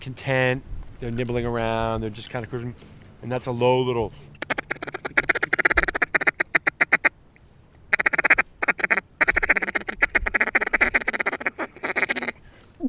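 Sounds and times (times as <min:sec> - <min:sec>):
speech: 0:00.0 - 0:04.4
wooden duck call playing a feeding call: 0:04.3 - 0:07.1, 0:07.9 - 0:12.4.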